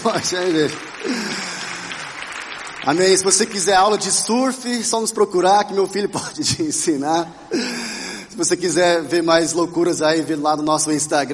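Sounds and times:
speech: 0.0 - 1.5, 2.8 - 11.3
laughter: 0.0 - 2.2
audience applause: 0.0 - 4.5.

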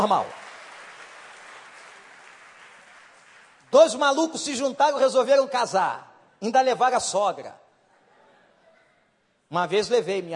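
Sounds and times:
speech: 0.0 - 0.4, 3.7 - 7.6, 9.5 - 10.3
audience applause: 0.0 - 4.1.

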